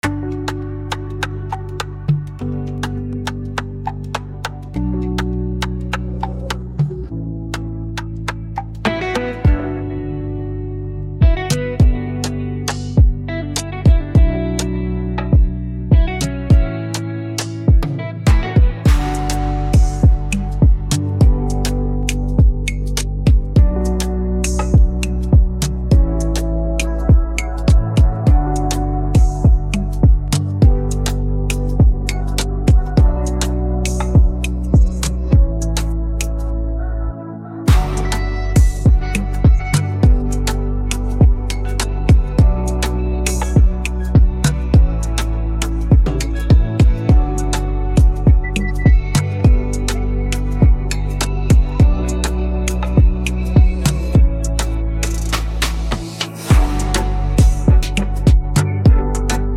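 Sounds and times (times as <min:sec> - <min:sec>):
music beat: 0:00.0 - 0:09.7, 0:11.2 - 0:36.5, 0:37.7 - 0:59.5.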